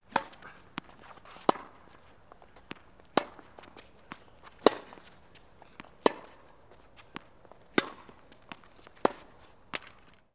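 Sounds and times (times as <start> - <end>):
tennis match: 0.0 - 10.3.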